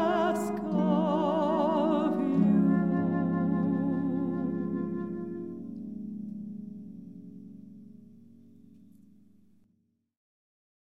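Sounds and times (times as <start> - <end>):
voice: 0.0 - 4.4
flute: 0.0 - 6.5
harp: 0.0 - 9.1.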